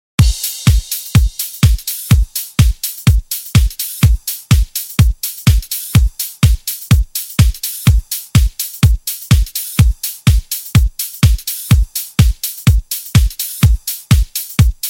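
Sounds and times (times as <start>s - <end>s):
sizzling music beat: 0.2s - 14.8s.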